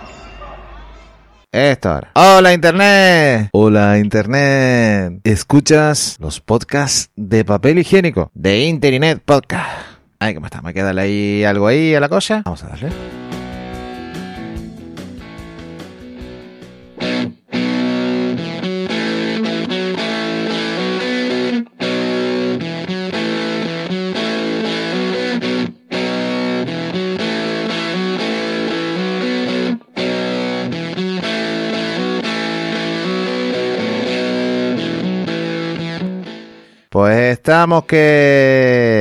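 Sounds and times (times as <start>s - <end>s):
speech: 1.5s - 13.2s, 37.0s - 38.9s
loud rock song with distorted electric guitar riffs and driving beat: 12.9s - 36.8s.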